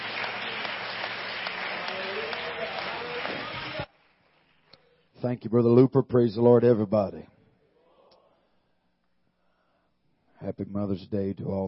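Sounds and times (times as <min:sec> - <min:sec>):
crowd hand clapping: 0:00.0 - 0:04.7
speech: 0:05.2 - 0:07.4, 0:10.6 - 0:11.6.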